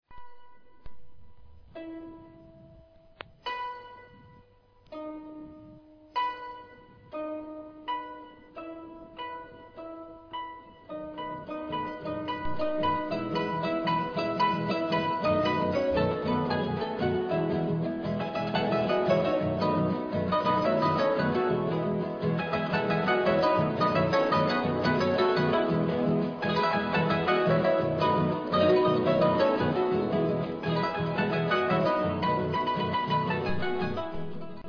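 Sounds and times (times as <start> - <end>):
polka: 10.9 - 34.6.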